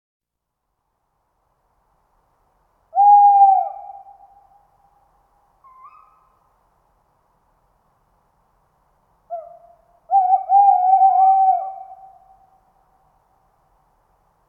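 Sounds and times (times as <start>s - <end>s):
tawny owl hooting: 2.9s - 4.5s, 5.6s - 6.4s, 9.3s - 12.5s.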